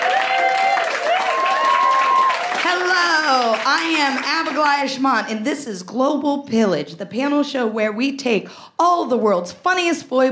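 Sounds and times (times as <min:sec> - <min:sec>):
audience applause: 0:00.0 - 0:04.8
speech: 0:02.7 - 0:10.3.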